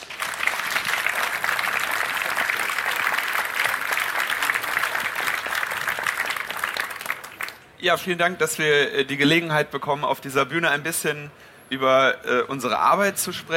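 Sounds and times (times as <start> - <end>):
sustained audience applause: 0.0 - 7.6
speech: 7.8 - 13.5.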